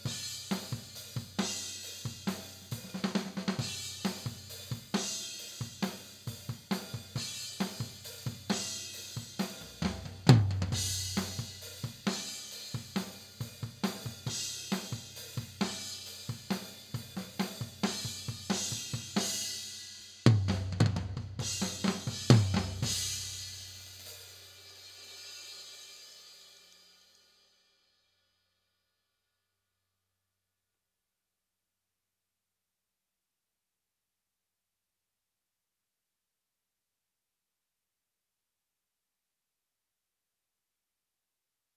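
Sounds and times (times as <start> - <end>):
mid tom drum: 0.0 - 19.6, 20.2 - 24.4.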